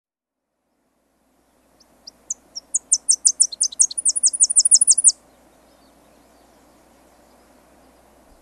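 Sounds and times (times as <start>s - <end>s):
Tennessee warbler song ending in a fast high trill: 1.5s - 8.2s.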